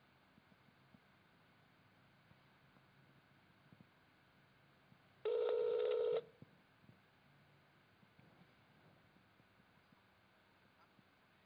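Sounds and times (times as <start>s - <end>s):
telephone tone while an unknown number is redialed: 5.2s - 6.3s.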